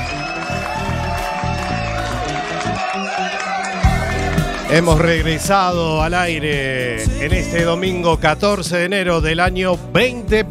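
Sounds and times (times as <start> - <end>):
applause and cheering: 0.0 - 6.2
speech: 4.7 - 10.4.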